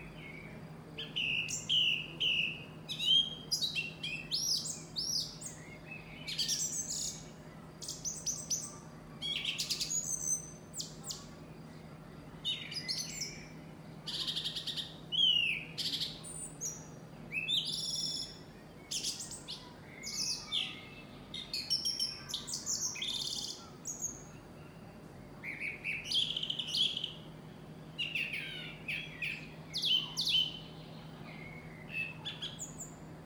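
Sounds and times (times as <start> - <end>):
faint low hum: 0.0 - 33.2
bird whistles and chirps: 0.2 - 11.3, 12.5 - 24.4, 25.4 - 27.2, 28.0 - 33.0.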